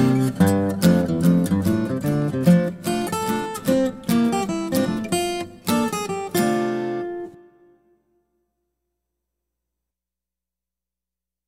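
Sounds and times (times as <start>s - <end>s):
guitar: 0.0s - 8.8s.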